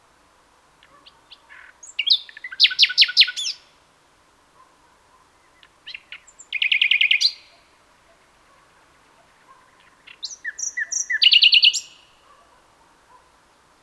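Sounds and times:
common nightingale Luscinia megarhynchos song of rapid chirps and trills: 0:00.8 - 0:03.8, 0:05.4 - 0:12.4.

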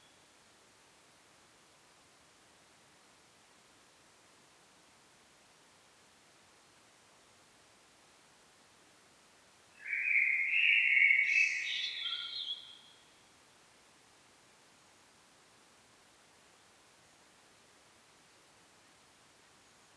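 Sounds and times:
common blackbird singing: 0:09.8 - 0:12.9.

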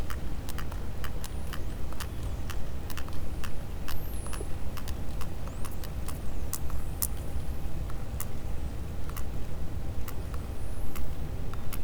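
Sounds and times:
Physeter macrocephalus sperm whale clicking: 0:00.0 - 0:11.8.

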